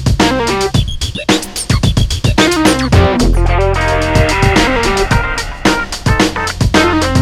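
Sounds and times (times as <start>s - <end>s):
depressing rock music: 0.1s - 7.2s.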